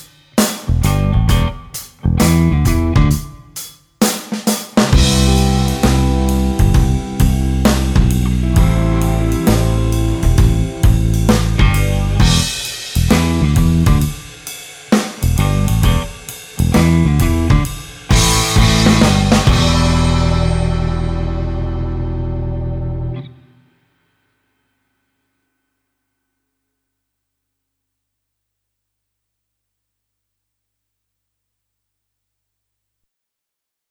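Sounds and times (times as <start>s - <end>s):
blues music: 0.0s - 23.3s.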